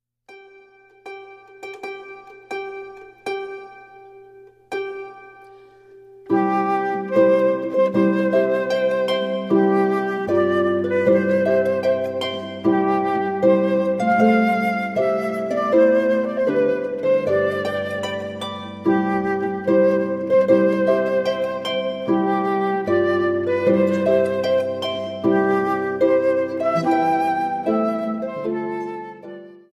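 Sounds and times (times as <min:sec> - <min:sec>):
music piece: 0:00.3 - 0:29.7.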